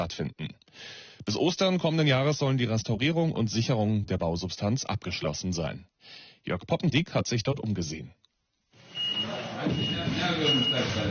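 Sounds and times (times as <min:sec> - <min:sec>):
speech: 0:00.0 - 0:08.2, 0:09.6 - 0:11.0
forklift reversing alarm at construction site: 0:08.8 - 0:11.0.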